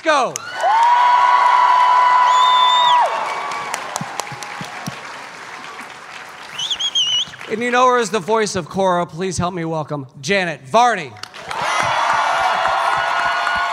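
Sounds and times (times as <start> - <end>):
speech: 0.0 - 0.5, 7.5 - 11.3
audience clapping at an Emerald City Comic Con panel: 0.3 - 8.1, 11.2 - 13.7
high-pitched cheer: 0.4 - 7.4, 11.4 - 13.7.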